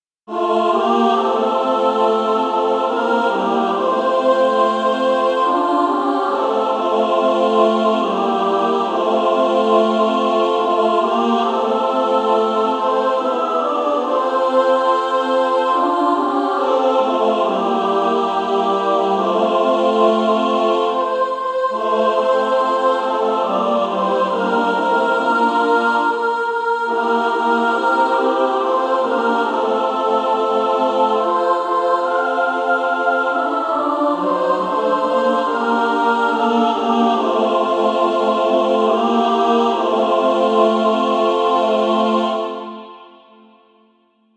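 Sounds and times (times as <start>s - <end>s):
female choir singing: 0.3s - 43.8s.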